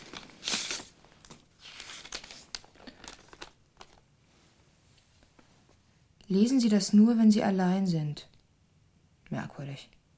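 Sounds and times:
letter paper crackling and rustling as it is unfolded: 0.0 - 4.1
speech: 6.3 - 8.3, 9.3 - 10.0.

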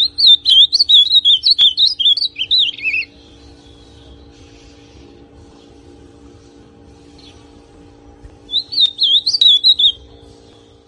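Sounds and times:
ultramarine grosbeak song: 0.0 - 5.2, 8.4 - 10.8.

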